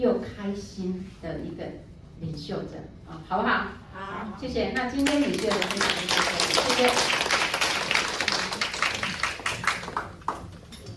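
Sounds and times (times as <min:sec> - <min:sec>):
speech: 0:00.0 - 0:07.5
audience applause: 0:05.2 - 0:10.5.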